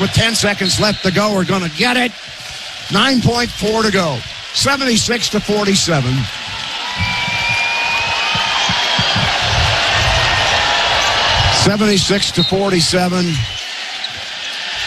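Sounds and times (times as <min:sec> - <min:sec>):
speech: 0:00.0 - 0:06.4, 0:11.7 - 0:13.5
crowd roar at a Nebraska NCAA tournament game: 0:00.0 - 0:14.8
voices shouting: 0:00.0 - 0:14.8
basketball dribbled on the court: 0:06.5 - 0:11.1.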